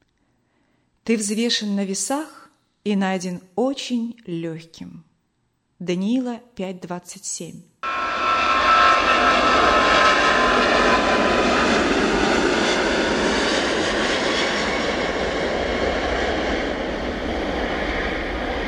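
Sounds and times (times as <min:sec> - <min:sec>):
speech: 0:01.0 - 0:05.1, 0:05.8 - 0:07.7
Boeing jet airliner engines roaring while climbing: 0:07.8 - 0:18.6.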